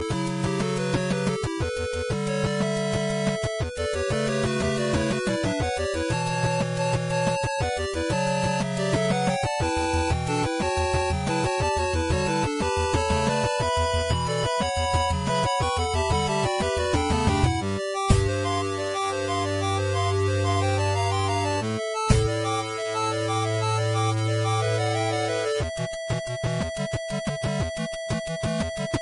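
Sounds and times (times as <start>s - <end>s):
8-bit theme music: 0.0s - 29.0s.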